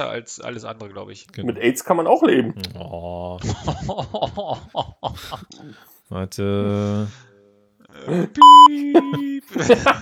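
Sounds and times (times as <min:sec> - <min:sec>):
speech: 0:00.0 - 0:07.3, 0:08.0 - 0:09.9
laughter: 0:03.4 - 0:05.6, 0:08.1 - 0:09.9
electronic beep: 0:08.4 - 0:09.2.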